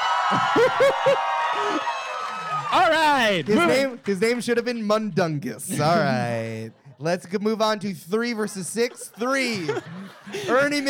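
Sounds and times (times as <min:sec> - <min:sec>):
voices whooping and cheering: 0:00.0 - 0:03.2
audience clapping: 0:00.0 - 0:05.5
speech: 0:00.3 - 0:02.0, 0:02.7 - 0:10.8
laughter: 0:00.4 - 0:01.7, 0:08.4 - 0:10.8.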